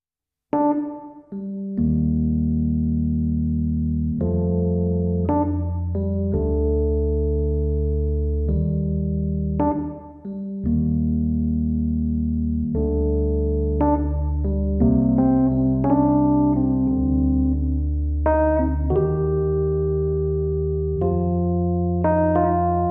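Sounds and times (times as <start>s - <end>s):
Rhodes electric piano: 0.6s - 22.8s.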